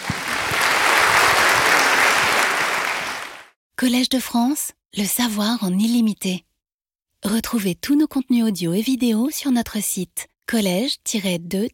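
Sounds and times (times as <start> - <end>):
audience applause: 0.0 - 3.5
speech: 3.8 - 6.5, 7.2 - 11.7.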